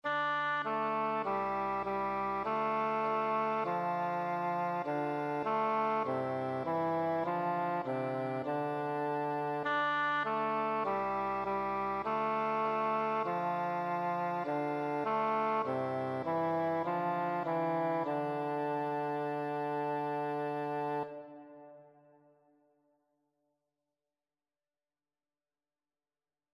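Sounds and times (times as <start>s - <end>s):
tenor flute playing: 0.0s - 22.3s.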